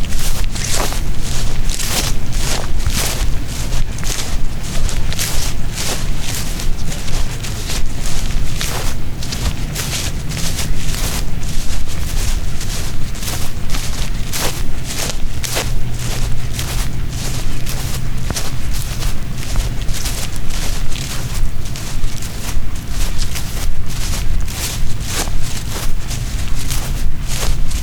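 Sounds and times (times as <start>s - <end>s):
footsteps on grass and gravel in Golden Gate Park: 0.0s - 27.8s
low rumble: 0.0s - 27.8s.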